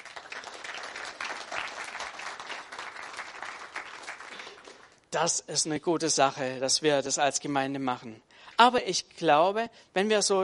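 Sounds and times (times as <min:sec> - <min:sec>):
audience applause: 0:00.0 - 0:05.0
speech: 0:05.1 - 0:10.4.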